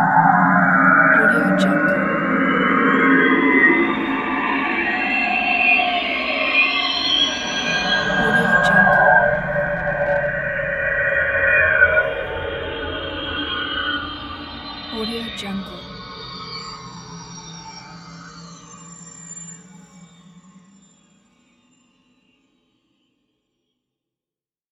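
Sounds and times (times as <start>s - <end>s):
ghostly sounds: 1.1s - 16.6s.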